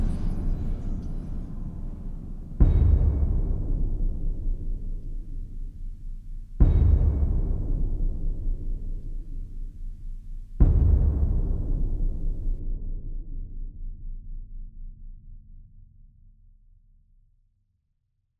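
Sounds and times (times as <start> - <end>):
epic destructive blockbuster trailer music: 0.0 - 13.7.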